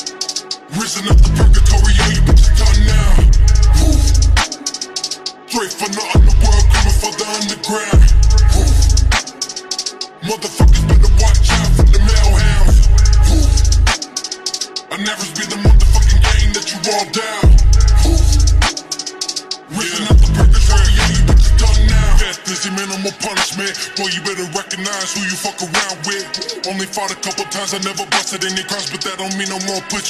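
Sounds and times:
slowed bass-boosted music: 1.1s - 4.5s, 6.2s - 7.2s, 8.0s - 9.2s, 10.6s - 14.0s, 15.6s - 16.6s, 17.4s - 18.8s, 20.1s - 22.3s.

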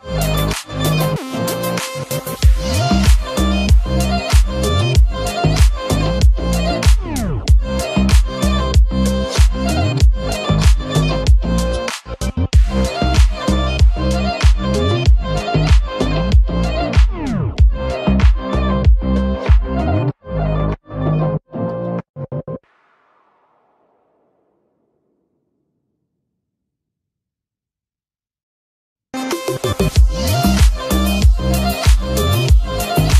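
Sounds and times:
chill music mix: 0.0s - 22.0s, 29.2s - 33.1s.

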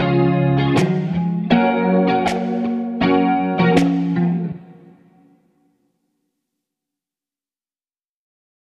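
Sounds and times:
instrumental music: 0.0s - 5.9s.

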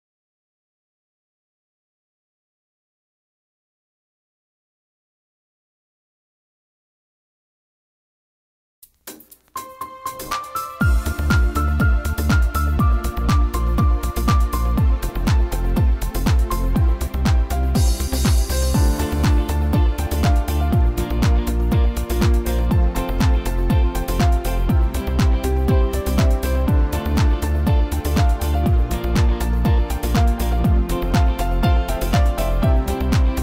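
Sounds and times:
instrumental cover music: 8.8s - 33.4s.

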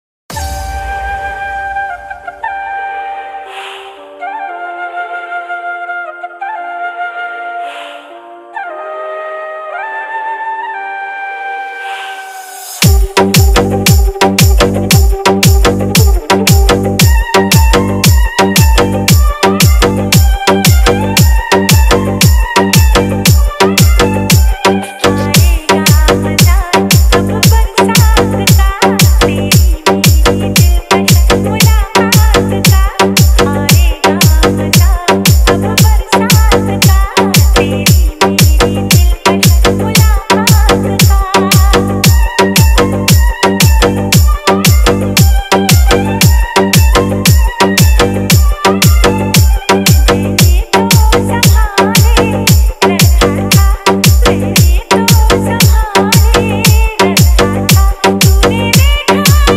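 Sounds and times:
hard bass remix: 12.8s - 59.5s.

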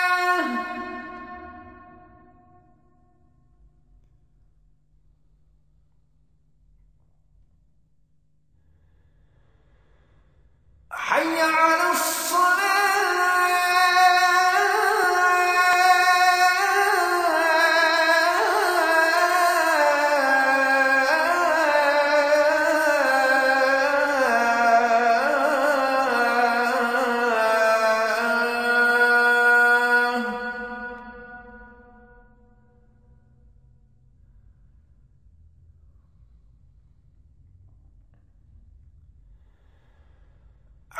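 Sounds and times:
azan call to prayer: 0.0s - 2.8s, 10.9s - 32.2s.

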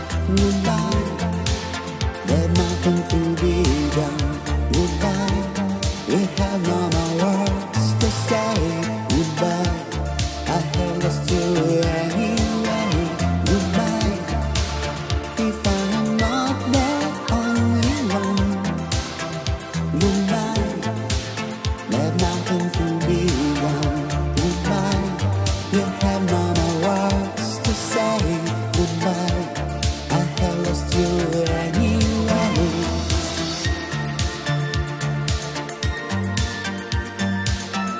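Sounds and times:
80s new Euro italo disco music: 0.0s - 37.9s.

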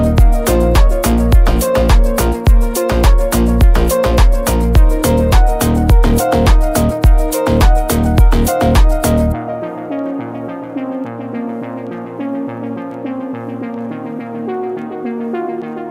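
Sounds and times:
deep house beat car music with boosted bass: 0.0s - 9.6s.

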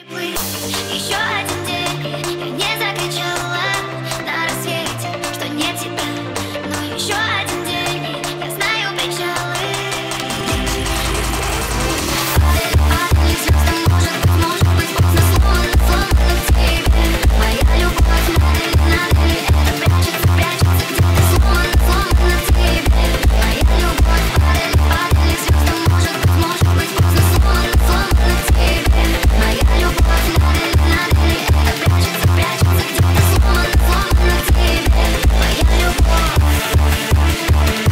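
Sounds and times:
hardstyle remix: 0.3s - 37.9s.

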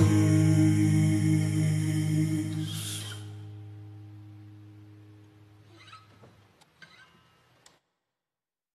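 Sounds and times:
extended slowed reverb music: 0.0s - 5.7s.

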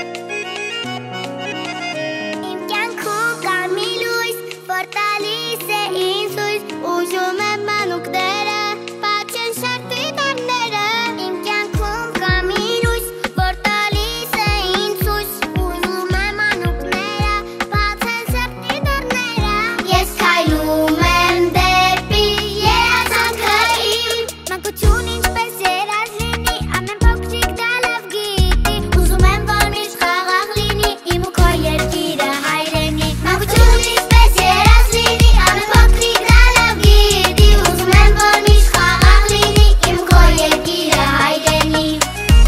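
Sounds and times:
vocals: 2.3s - 42.4s.

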